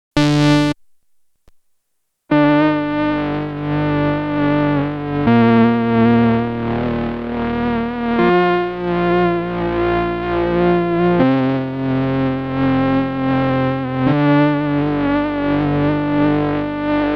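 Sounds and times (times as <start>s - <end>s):
worn VHS-style synth: 0.2s - 0.8s, 2.3s - 17.1s.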